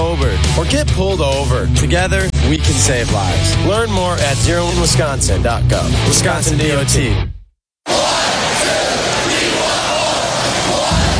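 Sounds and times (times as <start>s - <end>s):
speech: 0.6s - 8.0s
Badger hockey fans cheering: 7.9s - 11.1s.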